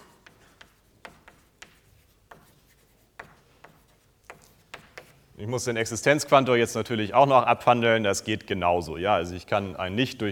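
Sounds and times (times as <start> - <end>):
handwriting strokes and taps during a mathematics lecture: 0.0 - 5.4
speech: 5.4 - 10.3.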